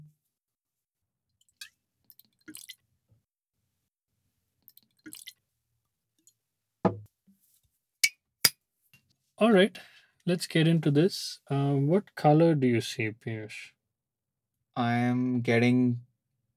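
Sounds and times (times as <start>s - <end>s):
speech: 2.5s - 2.8s, 9.4s - 13.8s, 14.8s - 16.1s
whisky poured into glasses: 2.5s - 2.8s, 4.7s - 5.4s.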